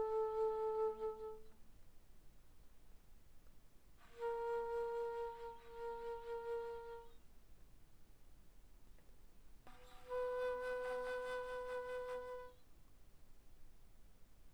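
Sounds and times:
bass flute played pianissimo from C4 to B4: 0.0s - 1.5s, 4.0s - 7.2s, 9.9s - 12.6s.

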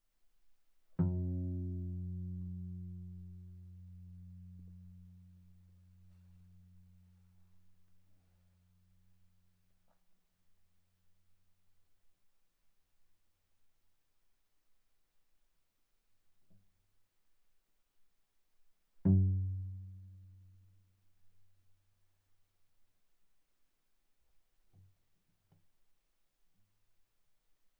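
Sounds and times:
viola pizzicato on the G string: 1.0s - 5.4s, 19.1s - 20.6s.

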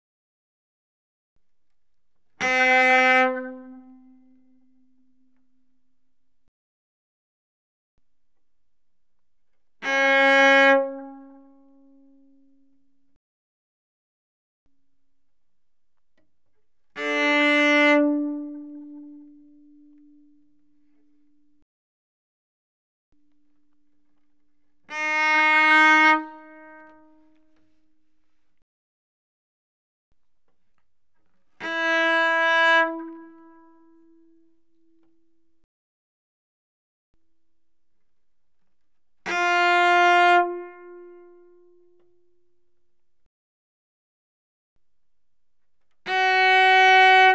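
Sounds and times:
cello bowed fortissimo on the A string: 2.4s - 5.2s, 9.8s - 12.8s, 16.9s - 20.9s, 24.9s - 27.8s, 31.6s - 35.2s, 39.2s - 42.2s, 46.0s - 47.3s.

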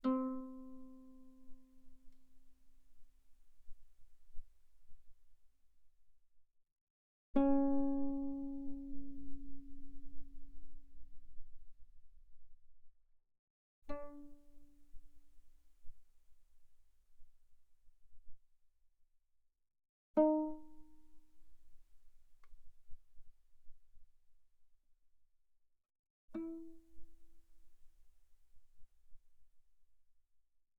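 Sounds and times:
guitar notes played pianissimo on the A string, C4 and E4: 0.0s - 2.2s, 7.4s - 10.0s, 26.4s - 27.0s.

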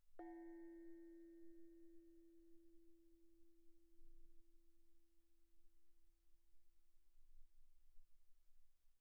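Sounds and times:
Thai gong E4 played pianissimo: 0.2s - 3.4s.

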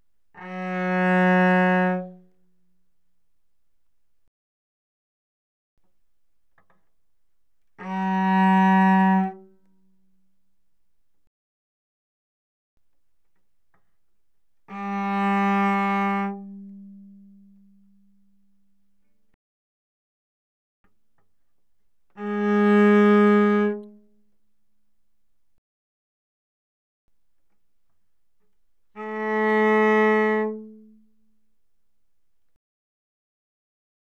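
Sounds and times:
cello arco mezzo forte on the G string: 0.3s - 2.6s, 7.6s - 10.1s, 14.6s - 18.6s, 22.1s - 24.1s, 28.9s - 31.1s.

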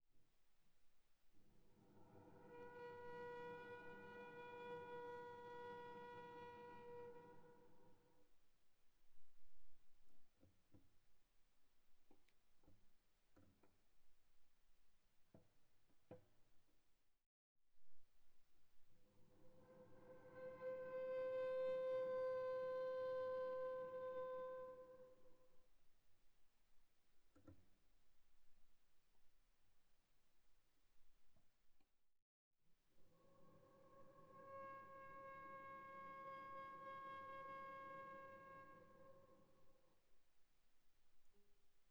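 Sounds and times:
viola bowed on the D string, very soft: 1.5s - 8.3s, 19.0s - 25.7s, 33.0s - 40.1s.

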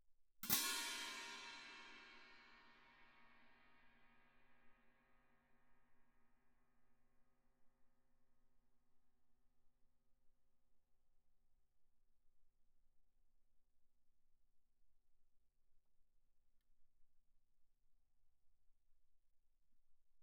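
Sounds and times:
orchestral crash cymbals played mezzo-forte: 0.4s - 3.5s.

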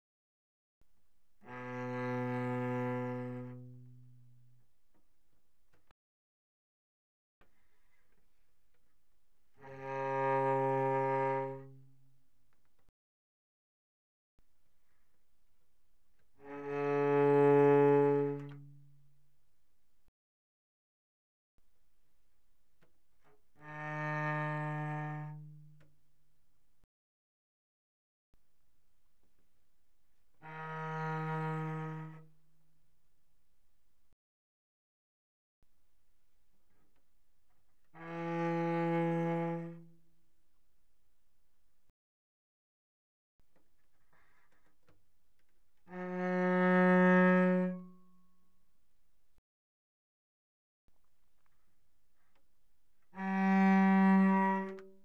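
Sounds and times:
cello bowed pianissimo on G string: 1.2s - 5.0s, 8.0s - 12.9s, 16.2s - 19.3s, 22.8s - 26.2s, 30.1s - 32.8s, 36.7s - 40.6s, 43.6s - 48.3s, 52.3s - 55.0s.

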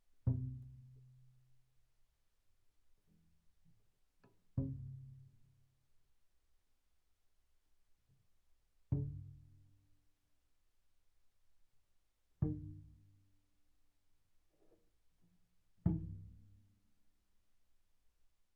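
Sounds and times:
double bass pizzicato on the E string: 0.3s - 1.2s, 4.5s - 5.3s, 8.9s - 9.6s, 15.9s - 16.6s.

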